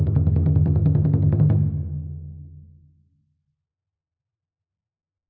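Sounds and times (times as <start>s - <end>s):
drum beating: 0.0s - 2.0s.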